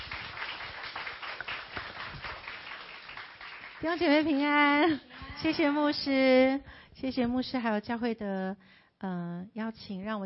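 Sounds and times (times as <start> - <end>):
crowd applauding: 0.0 - 4.4
speech: 3.8 - 10.2.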